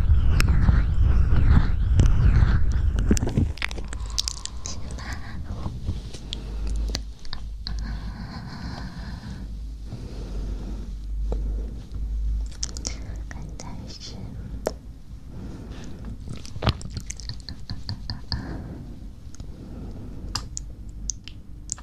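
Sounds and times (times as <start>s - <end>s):
heavy low rumble: 0.0s - 21.8s
steady low hum: 0.0s - 21.8s
close wet mouth clicks, smacks and chewing-like bites: 3.0s - 5.2s, 12.4s - 13.0s, 16.3s - 18.4s, 20.3s - 21.8s.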